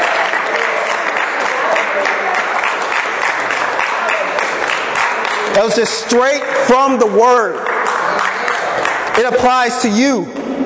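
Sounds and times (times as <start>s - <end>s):
audience clapping in praise: 0.0s - 10.0s
speech: 5.6s - 7.7s, 9.2s - 10.4s.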